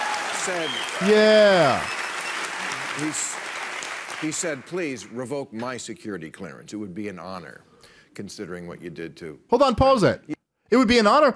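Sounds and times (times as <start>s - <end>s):
studio audience applause on Bill Maher's talk show: 0.0s - 5.1s
speech: 0.4s - 2.0s, 3.0s - 3.5s, 4.2s - 11.3s.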